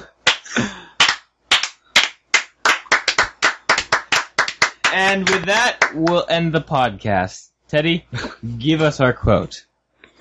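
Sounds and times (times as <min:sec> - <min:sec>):
slow hand claps: 0:00.2 - 0:06.2
speech: 0:00.5 - 0:00.8, 0:04.9 - 0:10.1.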